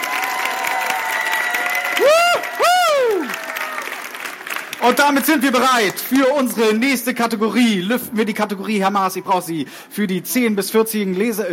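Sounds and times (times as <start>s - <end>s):
audience applause: 0.0s - 6.5s
speech: 4.8s - 11.5s.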